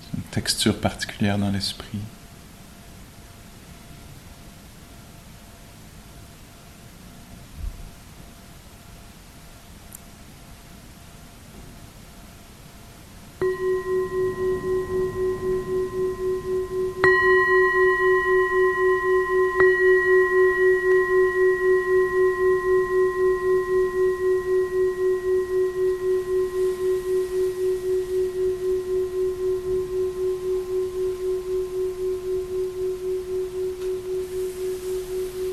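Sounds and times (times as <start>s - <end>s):
speech: 0.4s - 2.2s
meditation bell ringing: 13.4s - 35.5s.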